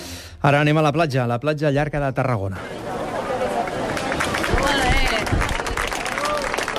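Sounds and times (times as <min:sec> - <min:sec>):
speech: 0:00.4 - 0:02.7
applause at sea turtle release: 0:03.1 - 0:06.7.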